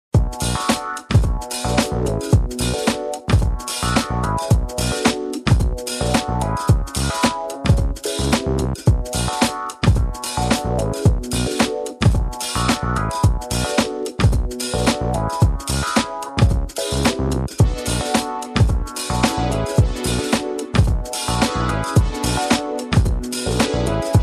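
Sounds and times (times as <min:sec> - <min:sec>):
rhythmical funk music: 0:00.2 - 0:24.2.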